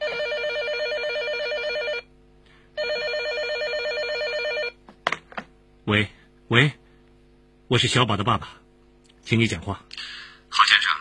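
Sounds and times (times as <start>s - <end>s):
telephone ringing: 0.0s - 2.1s, 2.8s - 4.8s
speech: 5.9s - 6.8s, 7.7s - 8.6s, 9.3s - 10.6s.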